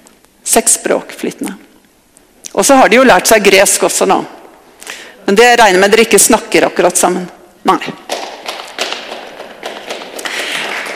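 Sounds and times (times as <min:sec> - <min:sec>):
speech: 0:00.6 - 0:01.7, 0:02.6 - 0:04.4, 0:05.3 - 0:08.1
crowd applause: 0:08.1 - 0:10.9.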